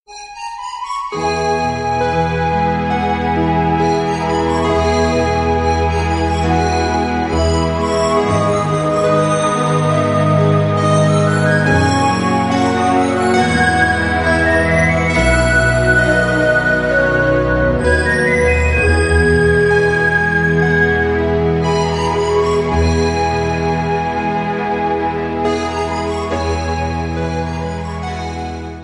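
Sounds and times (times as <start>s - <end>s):
beautiful melody: 0.1s - 28.8s.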